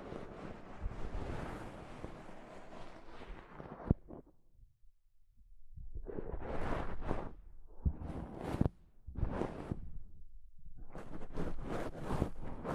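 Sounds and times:
soft fabric brushing against a microphone: 0:00.0 - 0:04.2, 0:06.1 - 0:10.0, 0:10.8 - 0:12.7.

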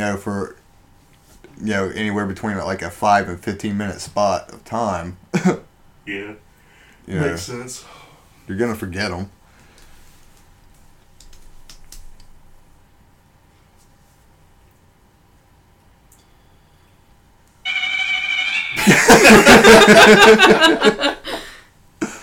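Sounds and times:
speech: 0:00.0 - 0:00.6, 0:01.6 - 0:06.4, 0:07.1 - 0:09.4, 0:19.1 - 0:21.2
phones and smartwatches chiming and buzzing: 0:17.6 - 0:20.8
steady electronic alert tone: 0:17.7 - 0:19.1
laughter: 0:18.8 - 0:21.5.

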